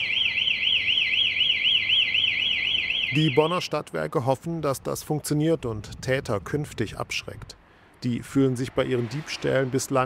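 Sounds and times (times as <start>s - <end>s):
charging station acoustic theft alarm: 0.0s - 3.7s
speech: 3.1s - 10.0s.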